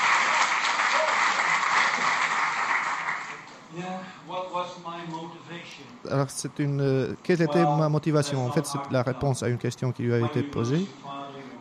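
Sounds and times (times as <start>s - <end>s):
audience applause: 0.0s - 3.5s
speech: 4.4s - 11.2s.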